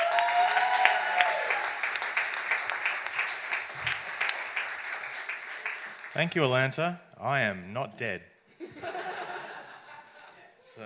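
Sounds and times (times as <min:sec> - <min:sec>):
stand-up comedy show audience in Atlanta applauding a comedian: 0:00.0 - 0:06.7
speech: 0:06.2 - 0:09.0
laughter: 0:08.6 - 0:10.8.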